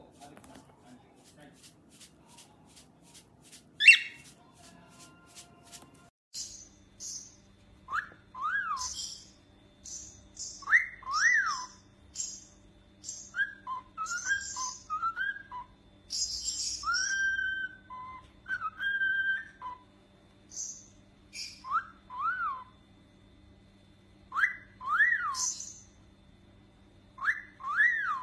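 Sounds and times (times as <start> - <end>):
cockatiel whistling: 3.8 - 4.3, 6.5 - 12.5, 13.1 - 19.8, 21.4 - 22.7, 24.3 - 25.9, 27.2 - 28.2.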